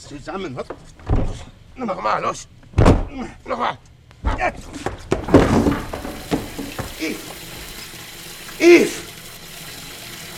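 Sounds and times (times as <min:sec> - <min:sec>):
speech: 0:00.0 - 0:05.0, 0:07.0 - 0:07.3, 0:08.6 - 0:09.0
water running from a tap into a bathtub: 0:05.1 - 0:10.3.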